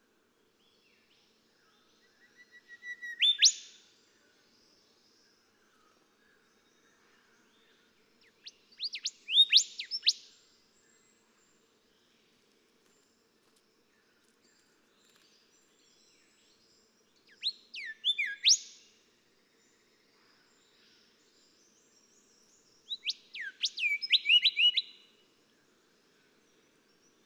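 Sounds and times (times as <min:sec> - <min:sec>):
golden whistler singing: 0:02.3 - 0:03.8, 0:08.8 - 0:10.2, 0:17.4 - 0:18.7, 0:22.9 - 0:25.0.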